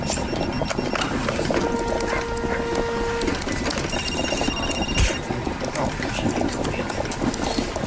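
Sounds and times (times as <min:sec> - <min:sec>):
high electronic tones: 0:00.0 - 0:05.3
coffee machine bubbling in an office: 0:00.0 - 0:07.8
mechanical hum: 0:00.0 - 0:07.8.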